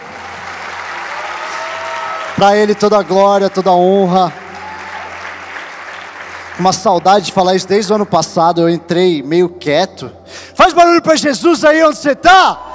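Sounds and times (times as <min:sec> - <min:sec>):
applause: 0:00.0 - 0:08.1
speech: 0:02.4 - 0:04.4, 0:06.6 - 0:12.7.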